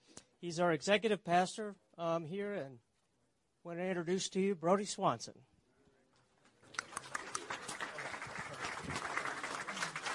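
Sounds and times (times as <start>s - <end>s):
speech: 0.4s - 2.9s, 3.6s - 5.5s
audience clapping: 6.6s - 10.1s.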